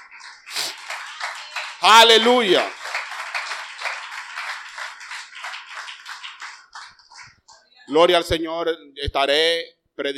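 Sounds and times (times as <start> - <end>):
audience applause: 0.0 - 7.4
speech: 1.8 - 2.8, 7.9 - 10.1.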